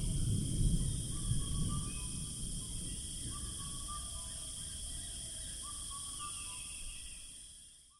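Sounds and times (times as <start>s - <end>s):
thunder in the Terai: 0.0s - 3.8s.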